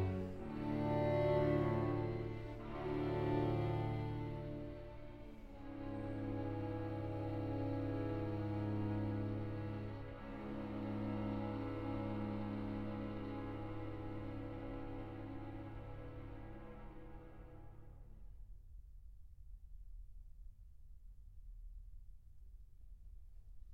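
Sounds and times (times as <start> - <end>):
string quartet: 0.0 - 18.2.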